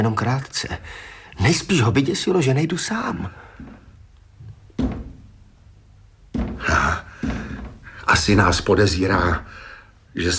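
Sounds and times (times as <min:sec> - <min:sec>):
speech: 0:00.0 - 0:03.8, 0:08.1 - 0:10.3
knocking on a door: 0:04.7 - 0:05.3, 0:06.3 - 0:09.4.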